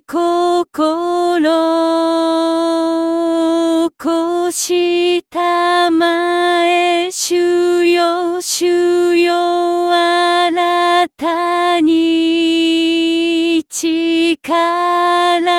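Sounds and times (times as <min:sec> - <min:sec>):
alto vocal: 0:00.0 - 0:15.5.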